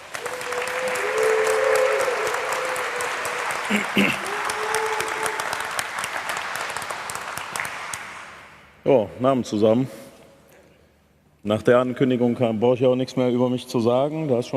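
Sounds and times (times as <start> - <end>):
audience applause: 0.0 - 8.6
speech: 3.7 - 4.3, 8.8 - 10.0, 11.4 - 14.5.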